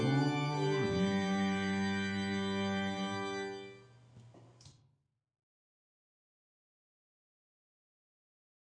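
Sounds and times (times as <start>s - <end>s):
bass instruments: 0.0s - 3.7s.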